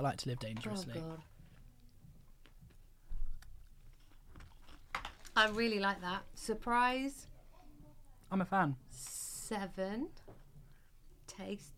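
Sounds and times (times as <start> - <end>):
speech: 0.0 - 1.3, 5.4 - 7.3, 8.3 - 10.4, 11.3 - 11.7
chewing of a chocolate biscuit: 2.4 - 5.4.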